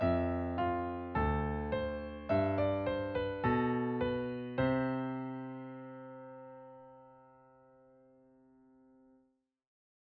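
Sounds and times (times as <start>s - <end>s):
bass in C major: 0.0s - 4.9s.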